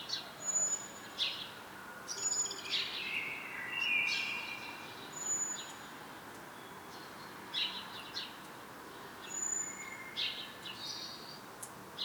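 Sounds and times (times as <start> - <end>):
common blackbird song: 0.0 - 5.8, 6.5 - 12.0.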